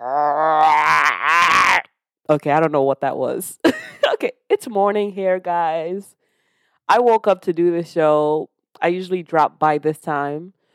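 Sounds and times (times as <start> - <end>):
person growling: 0.0 - 1.9
speech: 2.3 - 6.2, 6.9 - 10.6.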